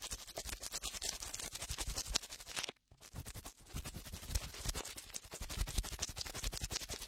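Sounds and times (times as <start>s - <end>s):
cotton swabs cleaning inside an ear: 0.1s - 6.9s.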